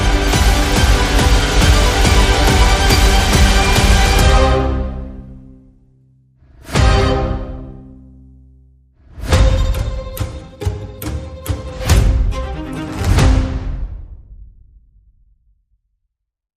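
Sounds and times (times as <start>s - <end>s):
friendly march music: 0.0s - 5.7s, 6.6s - 14.0s.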